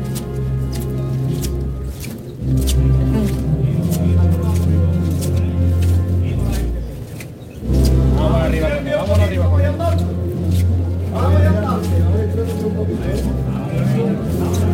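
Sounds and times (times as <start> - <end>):
shoes squeaking on cobblestones: 0.0 - 14.7
steady low crowd murmur: 0.0 - 14.7.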